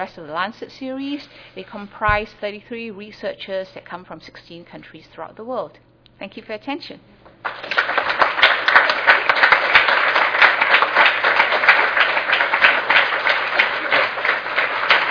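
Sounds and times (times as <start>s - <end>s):
speech: 0.0s - 7.7s
audience applause: 7.4s - 15.0s.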